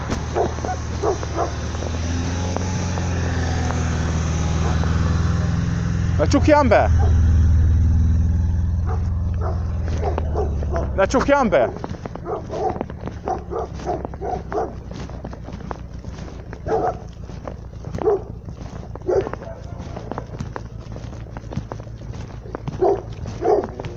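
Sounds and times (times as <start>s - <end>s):
steady low hum: 0.0s - 23.9s
small dog barking in short sharp yaps: 0.3s - 1.6s, 6.9s - 7.3s, 8.8s - 11.0s, 11.7s - 14.8s, 16.6s - 17.1s, 17.9s - 18.4s, 19.0s - 19.8s, 22.7s - 23.9s
speech: 6.2s - 7.2s, 11.0s - 11.9s.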